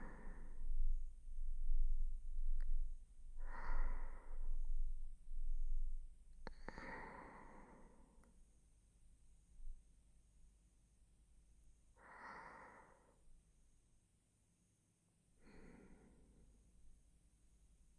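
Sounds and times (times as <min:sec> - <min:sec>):
person breathing in sleep on left side: 0:00.0 - 0:05.6, 0:06.4 - 0:08.3, 0:12.0 - 0:13.2, 0:15.4 - 0:16.6.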